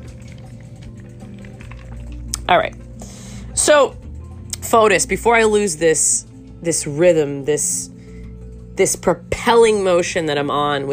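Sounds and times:
person sipping a cocktail: 0.0s - 3.5s
speech: 2.5s - 2.8s, 3.6s - 4.0s, 4.7s - 7.9s, 8.8s - 10.9s.

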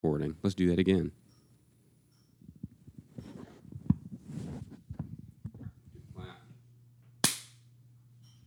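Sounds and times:
low hum: 0.0s - 8.4s
speech: 0.2s - 1.2s
soft shuffling: 2.5s - 6.5s
hand clap: 7.2s - 7.6s.

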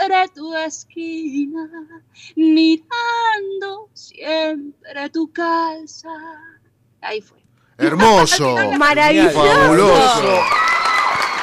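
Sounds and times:
speech: 0.2s - 11.0s
laughter: 7.8s - 10.5s
enthusiastic cheering and whooping: 9.3s - 11.4s
applause: 10.0s - 11.4s.

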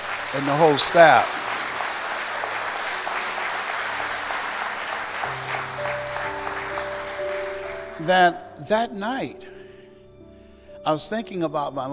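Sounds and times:
audience applause: 0.0s - 8.2s
speech: 0.3s - 1.4s, 8.0s - 9.5s, 10.8s - 11.9s.

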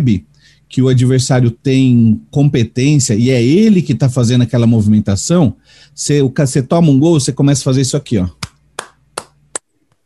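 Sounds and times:
speech: 0.0s - 8.5s
hand clapping: 8.4s - 9.7s.

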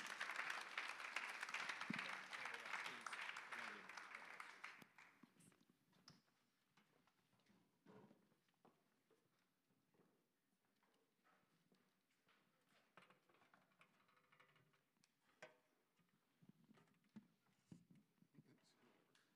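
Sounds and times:
audience applauding: 0.0s - 5.2s.

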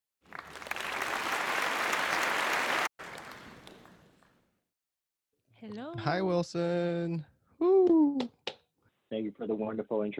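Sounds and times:
show audience applause welcoming a guest: 0.3s - 4.2s
speech: 5.6s - 8.4s, 9.1s - 10.1s.

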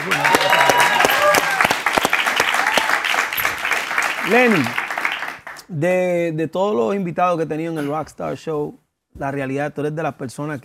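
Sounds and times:
audience applause: 0.0s - 5.6s
speech: 4.3s - 4.8s, 5.7s - 10.6s.

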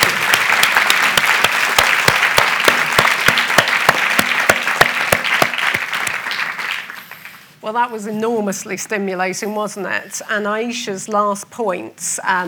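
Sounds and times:
roomful of people clapping for panelists: 0.0s - 7.5s
speech: 7.6s - 12.4s.

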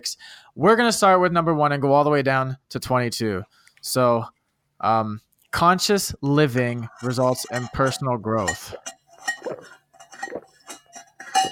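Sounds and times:
speech: 0.0s - 10.4s
water chugged from a glass: 6.4s - 11.5s
glass clinks: 6.9s - 11.5s.

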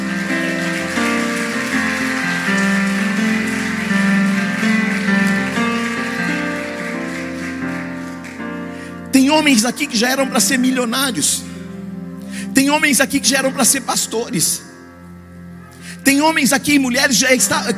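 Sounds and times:
audience applause: 0.0s - 9.1s
speech: 9.3s - 11.6s, 12.6s - 14.7s, 16.0s - 17.7s.

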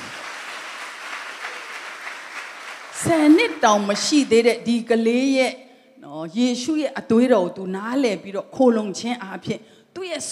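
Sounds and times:
church congregation clapping hands in praise: 0.0s - 4.4s
speech: 3.0s - 10.3s.

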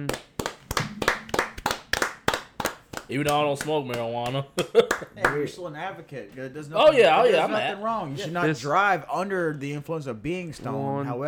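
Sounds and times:
small group clapping in rhythm: 0.0s - 5.5s
speech: 3.1s - 11.2s
laughter: 4.5s - 5.4s.

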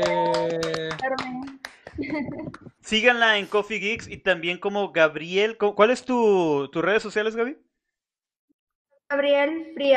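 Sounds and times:
few hands clapping: 0.0s - 3.8s
speech: 2.0s - 7.6s, 9.1s - 9.9s.

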